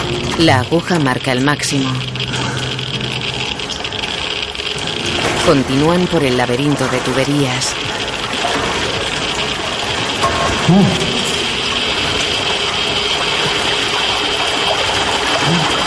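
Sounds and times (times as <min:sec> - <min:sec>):
water gushing out beside a wall: 0:00.0 - 0:15.8
speech: 0:00.4 - 0:02.4, 0:05.5 - 0:07.8, 0:10.7 - 0:11.1.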